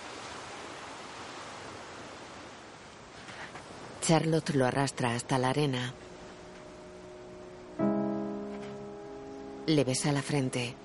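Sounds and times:
sea waves washing onto a beach: 0.0s - 7.8s
speech: 4.0s - 6.0s, 9.7s - 10.8s.

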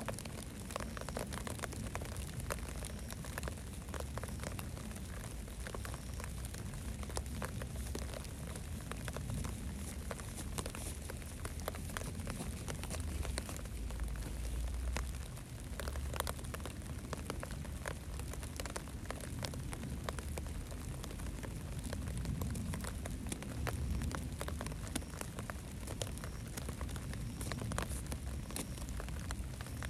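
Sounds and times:
light early-summer evening rain: 0.0s - 29.8s.

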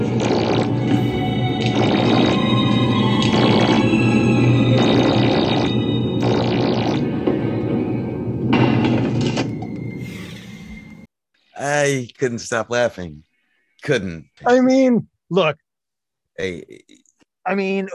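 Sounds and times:
film sound effect of axe stopped mid-swing, warbling drone with creaking tones: 0.2s - 9.4s
speech: 11.9s - 13.3s, 13.8s - 15.6s, 16.4s - 17.9s.

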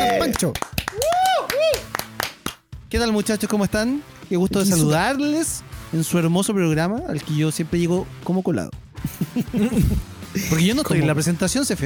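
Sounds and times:
hand claps: 0.0s - 2.7s
speech: 0.2s - 0.7s, 2.9s - 11.8s
whoops or whistles: 1.0s - 1.9s
laughter: 9.0s - 11.1s.

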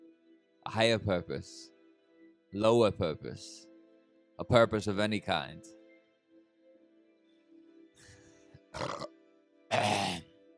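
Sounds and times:
speech: 0.7s - 1.7s, 2.5s - 3.7s, 4.4s - 5.8s, 8.7s - 9.0s
guttural burps into a microphone: 8.7s - 9.1s, 9.7s - 10.2s.

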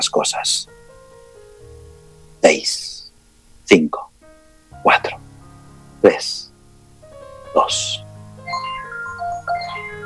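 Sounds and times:
speech: 0.0s - 0.8s, 3.7s - 4.1s, 4.8s - 5.2s, 6.0s - 6.4s, 7.6s - 8.0s
timer alarm melody marking one minute: 7.7s - 10.0s.

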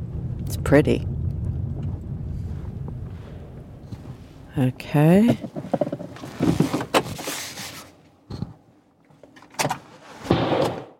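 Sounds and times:
low rumble: 0.0s - 7.2s
speech: 0.4s - 1.1s, 4.6s - 5.7s
gunshots: 10.3s - 10.9s.

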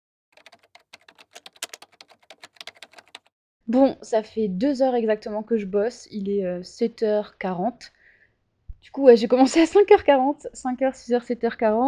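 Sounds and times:
rapid typing on a computer keyboard while writing a book: 0.4s - 3.3s
speech: 3.7s - 8.0s, 8.8s - 11.8s.

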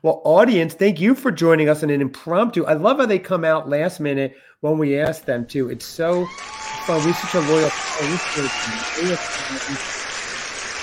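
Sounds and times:
speech: 0.0s - 10.0s
audience applause: 6.2s - 10.8s.

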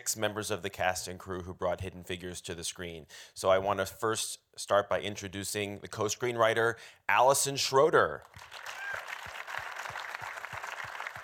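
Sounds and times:
speech: 0.0s - 9.0s
crowd applauding: 8.2s - 11.2s.

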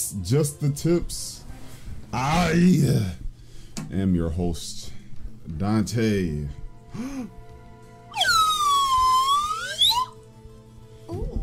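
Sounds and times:
speech: 0.1s - 1.4s, 2.1s - 3.2s, 3.8s - 7.4s
slide whistle: 8.1s - 10.2s.

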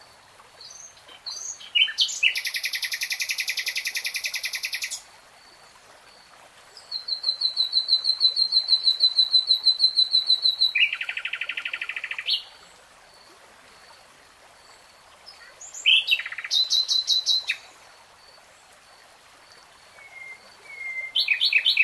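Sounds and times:
nightingale singing: 0.6s - 5.0s, 6.9s - 12.5s, 15.4s - 17.7s, 19.9s - 21.8s.

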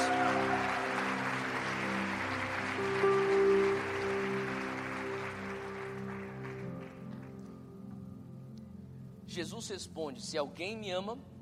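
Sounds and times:
church audience applause: 0.0s - 7.4s
sustained keyboard chords: 0.0s - 9.3s
speech: 9.4s - 11.3s.

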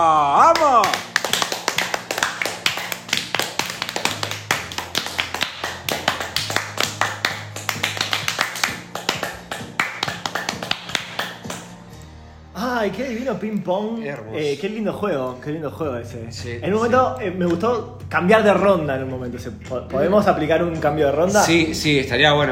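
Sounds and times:
hands clapping: 0.4s - 12.1s
speech: 12.9s - 22.5s.

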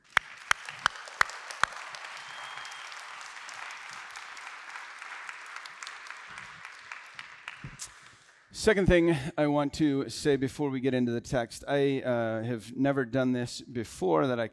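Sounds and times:
crowd round of applause: 0.0s - 8.3s
speech: 8.6s - 14.5s.

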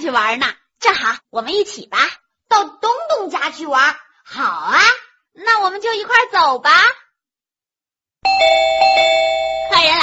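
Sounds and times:
speech: 0.1s - 7.0s, 8.2s - 10.0s
doorbell ringing: 8.2s - 10.0s.

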